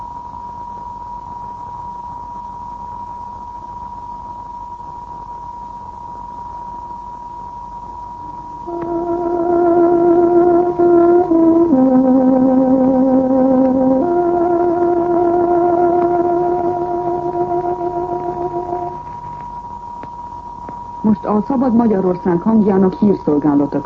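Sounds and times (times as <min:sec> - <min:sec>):
tárogató playing a radio time signal: 0:00.0 - 0:23.8
speech: 0:21.4 - 0:23.8.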